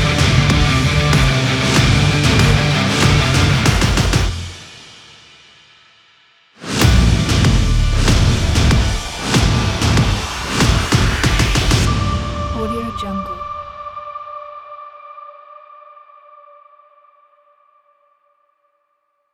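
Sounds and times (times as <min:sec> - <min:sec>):
aggressive cinematic rock trailer music: 0:00.0 - 0:05.2, 0:06.6 - 0:13.8.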